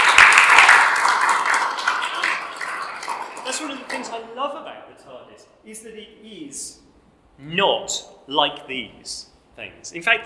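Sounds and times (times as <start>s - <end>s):
audience applause: 0.0s - 4.2s
speech: 3.6s - 10.2s.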